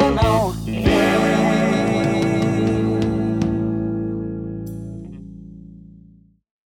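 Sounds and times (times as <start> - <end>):
TV jingle: 0.2 - 4.4.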